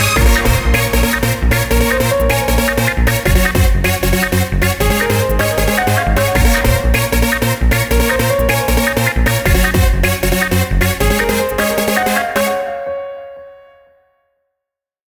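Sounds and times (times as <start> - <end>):
cool stylish trance music with piano melody: 0.0 - 13.6.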